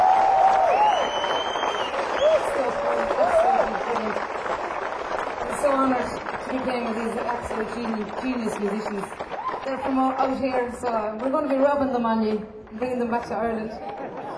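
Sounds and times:
audience applause: 0.0 - 11.7, 13.4 - 14.3
speech: 6.8 - 13.9.

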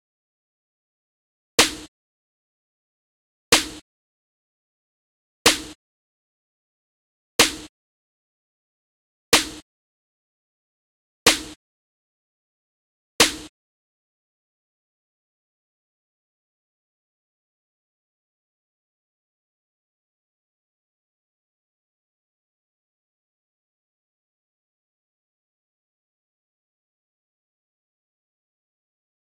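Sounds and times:
snare noise: 1.6 - 1.9, 3.5 - 3.8, 5.5 - 5.8, 7.4 - 7.7, 9.4 - 9.6, 11.3 - 11.6, 13.2 - 13.5.

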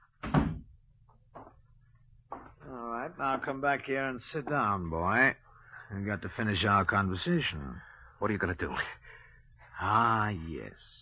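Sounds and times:
faint steady hum: 0.0 - 10.9
door being closed: 0.2 - 0.7
speech: 3.2 - 9.1, 9.8 - 10.9.

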